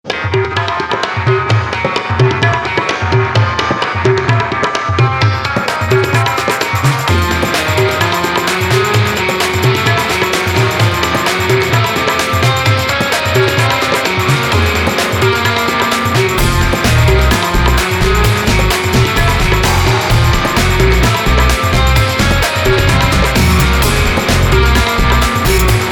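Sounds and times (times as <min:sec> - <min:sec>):
Arabic night music: 0:00.0 - 0:25.9.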